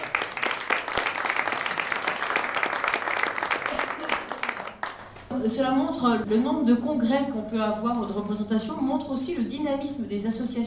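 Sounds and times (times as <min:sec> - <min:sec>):
crowd applauding: 0:00.0 - 0:05.1
speech: 0:05.4 - 0:10.6.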